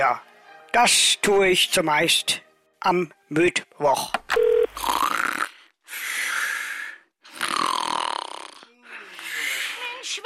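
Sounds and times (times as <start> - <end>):
speech: 0.0 - 4.2
man snoring after falling asleep: 4.8 - 5.7, 7.3 - 9.6.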